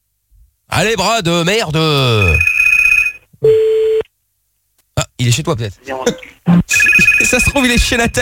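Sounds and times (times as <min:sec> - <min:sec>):
speech: 0:00.8 - 0:02.5, 0:05.2 - 0:06.6, 0:07.4 - 0:08.2
electronic telephone ringing tones: 0:02.2 - 0:04.0, 0:06.7 - 0:08.2.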